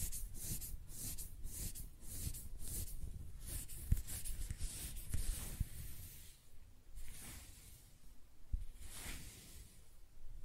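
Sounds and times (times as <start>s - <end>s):
hair scratching and brushing strokes: 0.0s - 6.4s, 8.7s - 9.8s.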